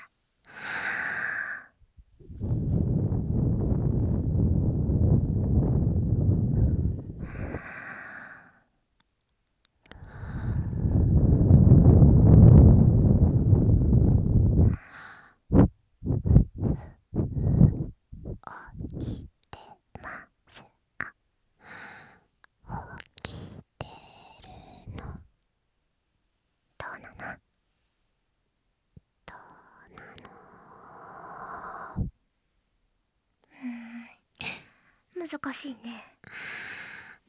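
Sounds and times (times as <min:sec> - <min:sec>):
person blowing air: 0:02.2 - 0:08.3, 0:10.0 - 0:19.3
speech: 0:35.3 - 0:36.5.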